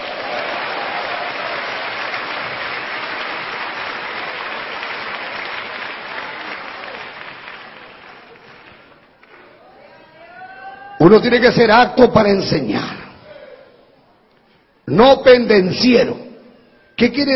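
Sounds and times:
audience clapping hands: 0:00.0 - 0:09.7
speech: 0:11.0 - 0:13.0, 0:15.0 - 0:16.2, 0:17.0 - 0:17.3.

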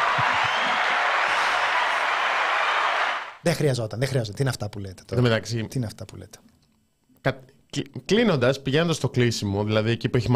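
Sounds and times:
applause sound effect played in a studio: 0:00.0 - 0:03.4
speech: 0:03.4 - 0:06.5, 0:07.2 - 0:10.3.

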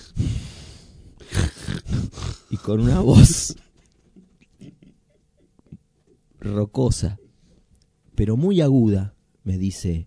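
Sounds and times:
voice imitating heavy loud breathing: 0:00.0 - 0:03.6
speech: 0:02.6 - 0:03.7, 0:06.5 - 0:07.2, 0:08.2 - 0:10.0.

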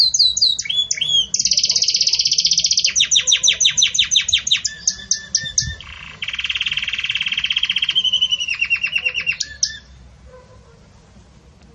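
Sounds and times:
canary singing: 0:00.0 - 0:10.5.

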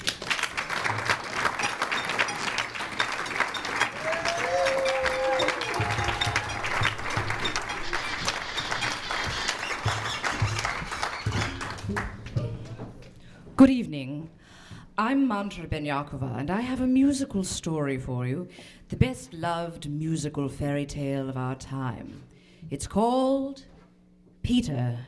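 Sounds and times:
audience applause welcoming the narrator at a live orchestral performance: 0:00.0 - 0:13.1
speech: 0:13.6 - 0:14.4, 0:15.0 - 0:23.7, 0:24.4 - 0:25.0.

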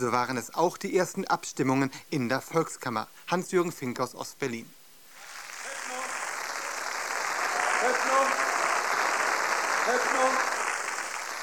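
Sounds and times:
speech: 0:00.0 - 0:04.8
parliament members cheering and applauding: 0:05.2 - 0:11.4.

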